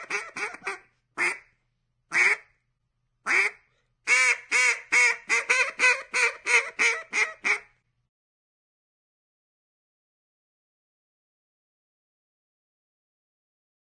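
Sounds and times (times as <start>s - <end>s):
duck: 0.0s - 1.5s, 2.1s - 2.5s, 3.3s - 7.8s.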